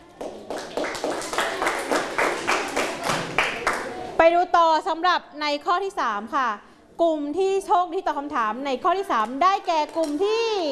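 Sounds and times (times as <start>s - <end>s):
group of children clapping in a steady rhythmic beat in a classroom: 0.0s - 4.0s
speech: 4.2s - 10.6s.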